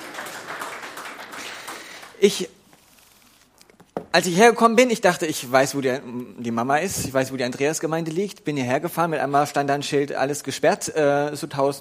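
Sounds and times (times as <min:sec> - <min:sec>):
hand clapping: 0:00.0 - 0:02.2
speech: 0:02.2 - 0:02.6, 0:04.2 - 0:11.7.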